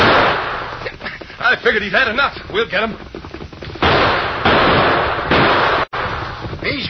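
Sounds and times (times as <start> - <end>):
loud gunshots in a shootout: 0.0 - 0.8, 3.8 - 6.8
speech: 1.5 - 3.1, 6.6 - 6.8.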